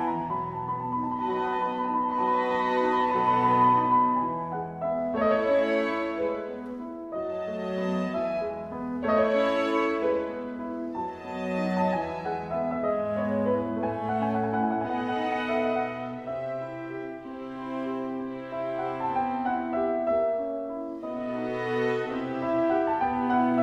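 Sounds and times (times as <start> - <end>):
concerto for piano and orchestra in D major: 0.0 - 23.6.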